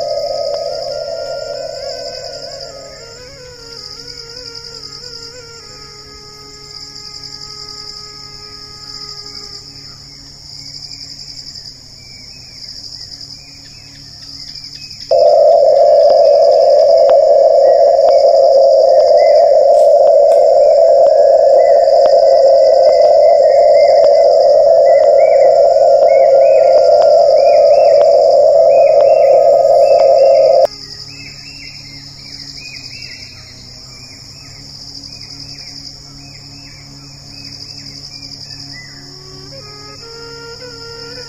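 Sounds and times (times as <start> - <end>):
soundscape mix: 0.0 - 5.7, 15.1 - 30.7.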